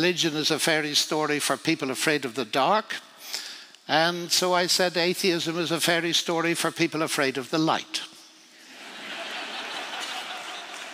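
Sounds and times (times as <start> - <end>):
speech: 0.0 - 8.1
laughter: 8.6 - 10.9
audience clapping: 9.4 - 10.9.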